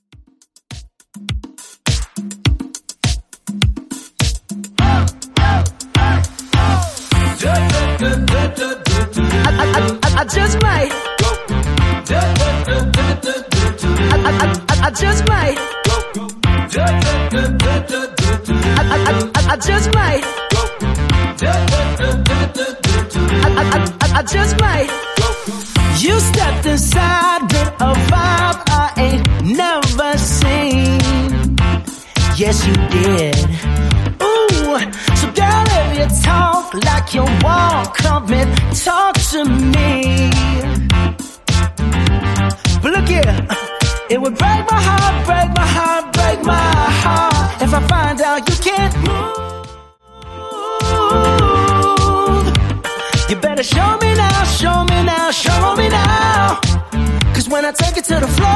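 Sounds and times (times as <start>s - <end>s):
disco music: 0.0s - 58.5s.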